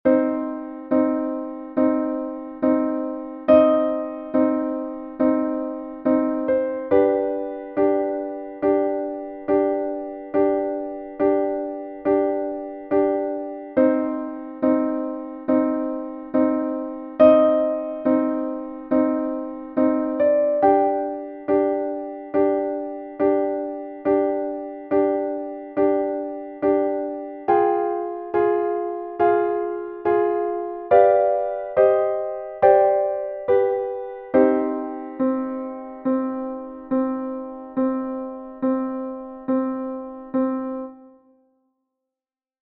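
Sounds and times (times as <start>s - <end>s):
sad music: 0.1s - 41.0s.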